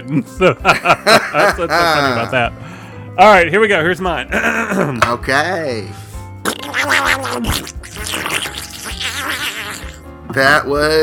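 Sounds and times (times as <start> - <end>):
speech: 0.0 - 6.0, 7.3 - 7.8, 10.3 - 11.0
laughter: 0.1 - 2.5, 4.3 - 5.0
cartoon duck's angry garbled voice: 6.5 - 9.9.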